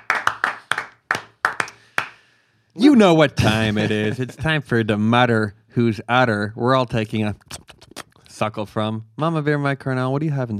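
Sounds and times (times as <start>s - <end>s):
sharp hand claps: 0.0s - 2.3s
speech: 2.8s - 7.6s, 8.4s - 10.5s
laughter: 3.2s - 4.7s.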